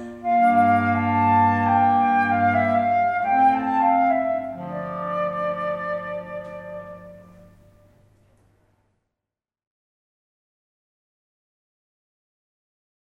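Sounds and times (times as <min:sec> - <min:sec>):
minuet: 0:00.0 - 0:08.4.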